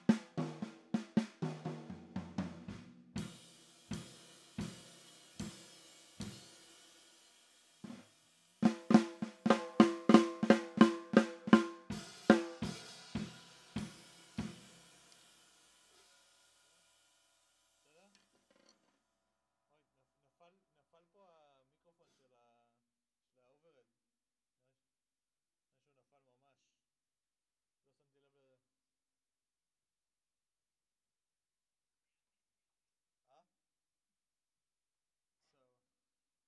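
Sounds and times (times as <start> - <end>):
snare drum: 0.0 - 16.2.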